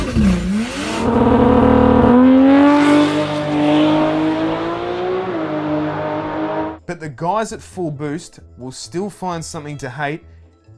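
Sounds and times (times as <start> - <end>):
car turbo engine revving with external wastegates: 0.0 - 6.8
speech: 7.2 - 10.3.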